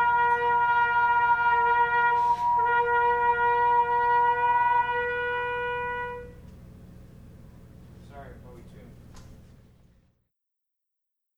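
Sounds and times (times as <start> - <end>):
instrument tuning: 0.0 - 6.6.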